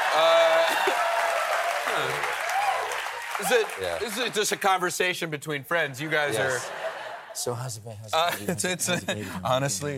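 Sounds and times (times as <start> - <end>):
audience applause: 0.0 - 4.7
speech: 0.1 - 0.4, 3.4 - 6.8, 7.4 - 9.9
laughter: 6.0 - 7.6, 8.2 - 9.7.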